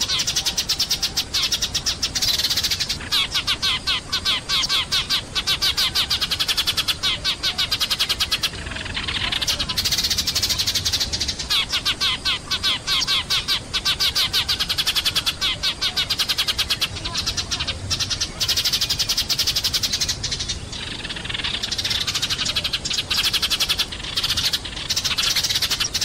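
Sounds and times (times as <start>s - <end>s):
sparrow chattering rattle: 0.0s - 26.0s.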